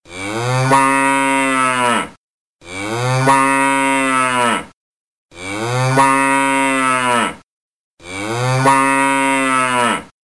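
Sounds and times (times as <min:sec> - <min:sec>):
cow: 0:00.1 - 0:07.4, 0:08.0 - 0:10.2.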